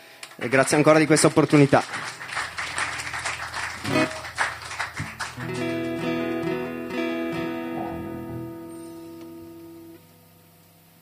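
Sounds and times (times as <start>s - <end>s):
speech: 0.4s - 2.1s
audience applause: 0.4s - 7.0s
sustained music: 1.9s - 10.0s.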